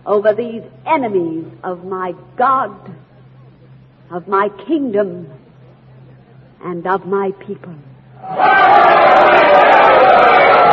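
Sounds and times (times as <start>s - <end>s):
speech: 0.0s - 3.1s, 4.1s - 5.4s, 6.6s - 10.6s
crowd noise: 8.2s - 10.7s.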